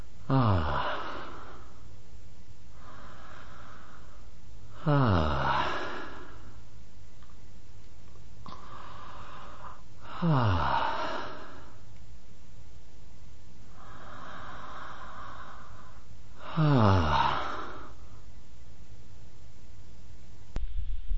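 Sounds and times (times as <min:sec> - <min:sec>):
person breathing in and out: 0:00.2 - 0:01.9, 0:02.7 - 0:06.7, 0:08.5 - 0:11.9, 0:13.7 - 0:18.3.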